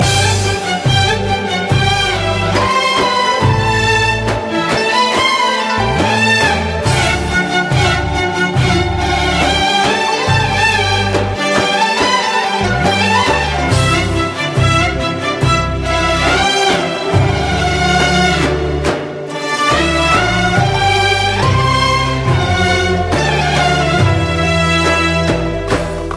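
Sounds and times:
violin: 0.0s - 26.1s.

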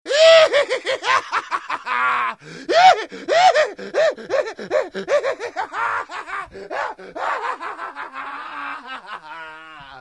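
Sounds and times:
nasty laughter: 0.3s - 9.9s.

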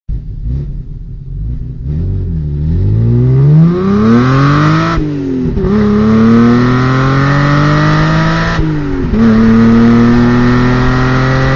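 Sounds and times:
BMW M5 engine starting: 0.1s - 11.5s.

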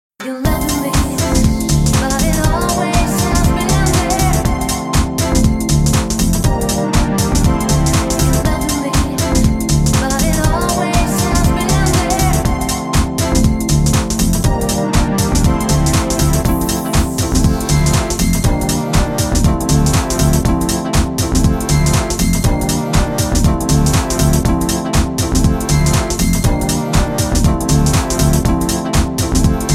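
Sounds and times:
mall music: 0.4s - 29.7s.

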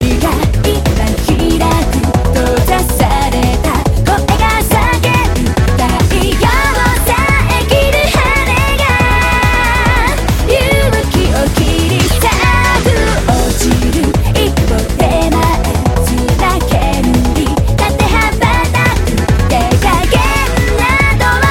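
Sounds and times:
techno music: 0.0s - 21.5s.

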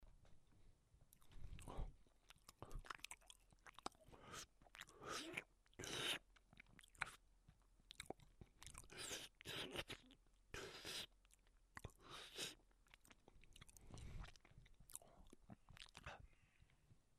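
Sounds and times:
person eating an orange: 1.1s - 16.2s.

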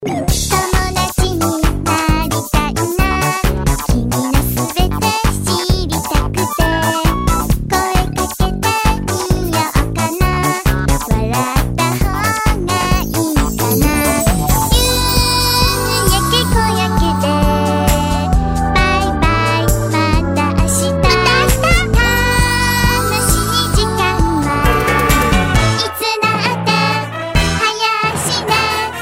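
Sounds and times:
Japanese cute song: 0.0s - 29.0s.

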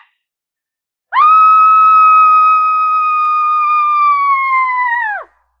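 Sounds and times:
woman screaming: 1.2s - 5.3s.

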